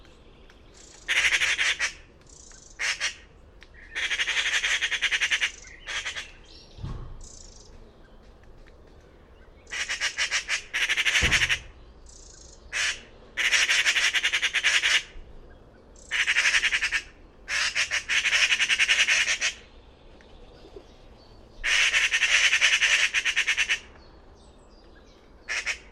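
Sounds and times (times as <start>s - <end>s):
bird squawking: 0.8s - 6.6s, 9.6s - 15.2s, 16.0s - 19.7s, 21.6s - 23.9s, 25.4s - 25.8s.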